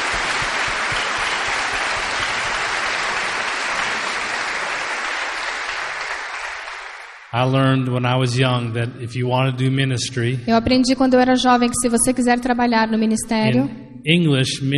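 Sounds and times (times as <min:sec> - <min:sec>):
crowd applauding: 0:00.0 - 0:07.5
speech: 0:07.4 - 0:14.7.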